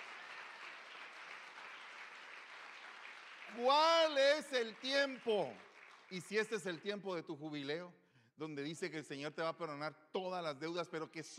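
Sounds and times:
audience applause: 0:00.0 - 0:06.5
speech: 0:03.5 - 0:11.3.

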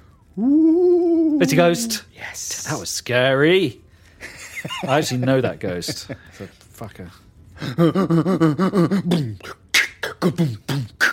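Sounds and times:
speech: 0:00.4 - 0:00.8, 0:01.4 - 0:09.6, 0:10.2 - 0:11.1
laughter: 0:04.2 - 0:06.6
person beatboxing: 0:08.1 - 0:11.1.

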